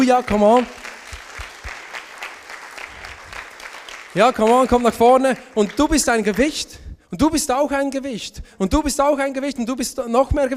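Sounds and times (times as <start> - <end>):
speech: 0.0 - 0.8, 4.2 - 10.5
audience applause: 0.0 - 6.5.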